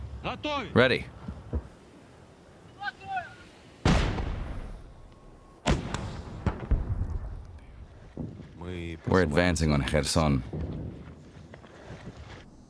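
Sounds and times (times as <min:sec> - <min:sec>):
speech: 0:00.2 - 0:01.2, 0:08.7 - 0:10.9
artillery fire during an advance on Kherson: 0:03.8 - 0:05.0, 0:05.6 - 0:07.5.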